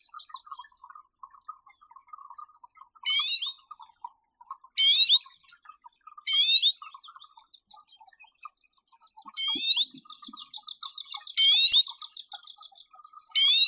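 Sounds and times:
Arctic redpoll Acanthis hornemanni calling: 3.1 - 3.6, 4.8 - 5.3, 6.3 - 6.8, 8.9 - 12.8, 13.4 - 13.6.

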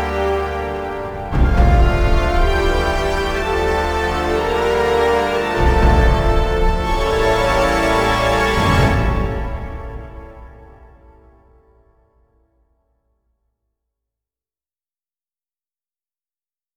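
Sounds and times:
choir singing: 0.0 - 10.6.

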